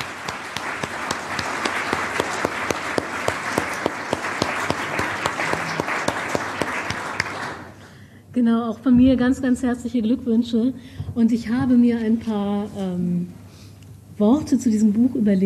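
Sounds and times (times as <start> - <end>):
audience applause: 0.0 - 7.8
speech: 8.4 - 13.4, 14.2 - 15.4.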